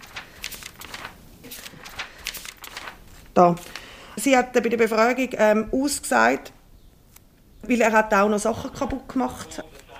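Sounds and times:
leafing through paper files: 0:00.0 - 0:04.0
speech: 0:03.4 - 0:06.6, 0:07.7 - 0:09.8.

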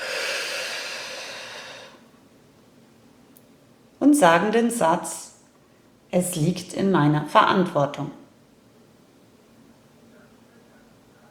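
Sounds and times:
slow exhale through the mouth: 0:00.0 - 0:02.0
speech: 0:04.1 - 0:05.3, 0:06.1 - 0:08.2.

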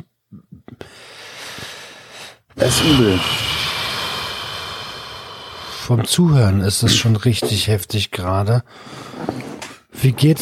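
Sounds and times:
deep breath in and out: 0:00.8 - 0:06.1, 0:08.7 - 0:09.6
speech: 0:02.6 - 0:03.4, 0:05.9 - 0:09.1, 0:10.0 - 0:10.4.

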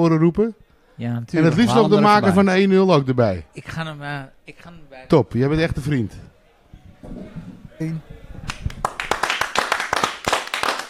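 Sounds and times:
speech: 0:00.0 - 0:06.3, 0:07.0 - 0:08.6
applause, people clapping: 0:08.4 - 0:10.8.

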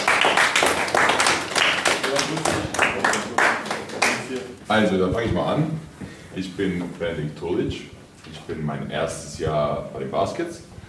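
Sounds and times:
children clapping to welcome two basketball players: 0:00.0 - 0:04.6
speech: 0:04.7 - 0:10.6.

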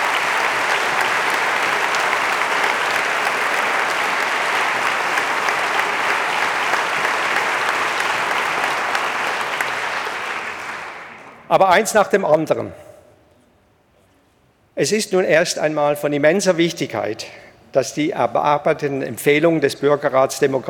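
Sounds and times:
large audience applauding after a political speech: 0:00.0 - 0:11.5
speech: 0:11.5 - 0:12.8, 0:14.8 - 0:20.6.

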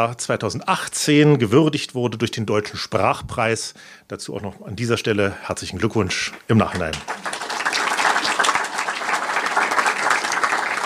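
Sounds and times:
speech: 0:00.0 - 0:07.3
audience applause: 0:06.7 - 0:10.8.

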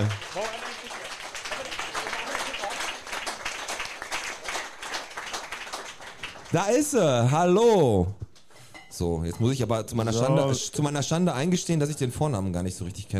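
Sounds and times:
speech: 0:00.0 - 0:00.5, 0:06.5 - 0:08.2, 0:09.0 - 0:13.1
audience applause: 0:00.0 - 0:06.8.

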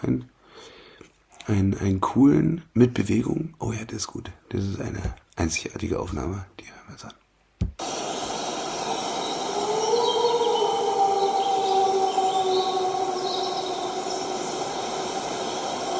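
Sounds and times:
speech: 0:01.5 - 0:07.2
faint bird chirps: 0:07.8 - 0:15.9
steady hiss: 0:07.8 - 0:15.9
wolves howling at middle distance: 0:07.8 - 0:15.9.

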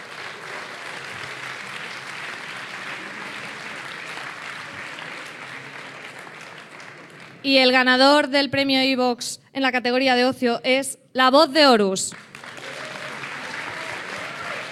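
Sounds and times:
audience applause: 0:00.0 - 0:07.5, 0:12.1 - 0:14.7
speech: 0:07.4 - 0:12.3.

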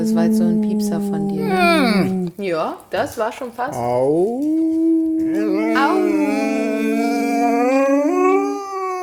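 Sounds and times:
speech: 0:00.1 - 0:06.5
dog howling: 0:01.2 - 0:02.3, 0:04.3 - 0:09.0.

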